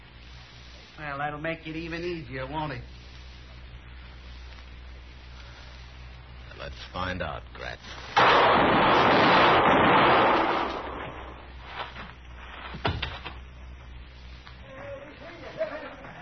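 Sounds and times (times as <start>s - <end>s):
speech: 1.0s - 3.0s, 6.7s - 10.0s
gunfire in a gunfight: 8.2s - 11.4s
laughter: 14.6s - 16.1s.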